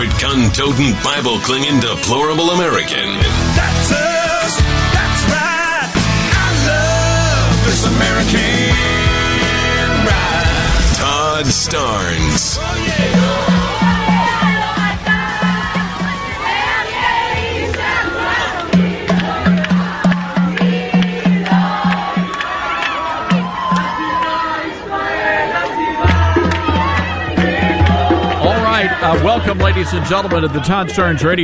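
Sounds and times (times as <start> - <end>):
speech: 0.0 - 5.6, 7.7 - 9.2, 11.4 - 13.5, 29.2 - 31.4
crowd cheering and shouting at the airport in Tel Aviv: 0.0 - 31.4.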